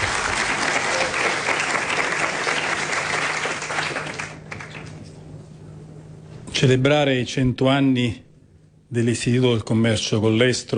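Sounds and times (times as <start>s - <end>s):
audience applause: 0.0s - 5.0s
speech: 6.6s - 8.2s, 8.9s - 10.7s.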